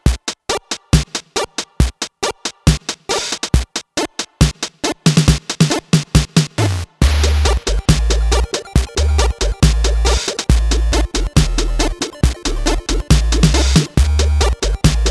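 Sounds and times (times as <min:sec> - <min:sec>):
reggae tune: 0:00.1 - 0:15.0.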